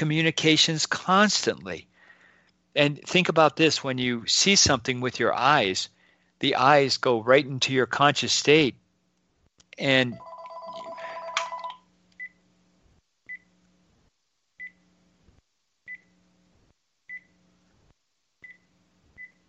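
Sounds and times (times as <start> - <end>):
speech: 0.0 - 1.9, 2.8 - 8.8, 9.8 - 10.3
electronic telephone ringing: 10.1 - 11.8.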